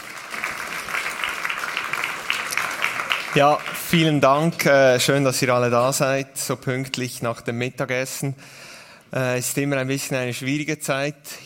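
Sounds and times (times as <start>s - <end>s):
brief audience applause: 0.0s - 4.1s
speech: 3.3s - 11.4s.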